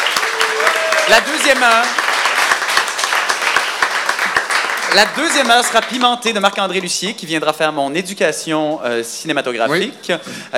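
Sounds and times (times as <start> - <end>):
studio audience of an evening talk show applauding: 0.0 - 6.3
speech: 1.1 - 2.0, 4.9 - 10.5.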